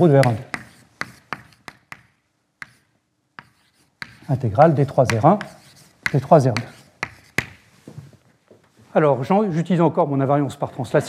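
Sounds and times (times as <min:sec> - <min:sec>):
speech: 0:00.0 - 0:00.5, 0:04.3 - 0:06.8, 0:09.0 - 0:11.0
writing on a board during a physics lecture: 0:00.0 - 0:07.6.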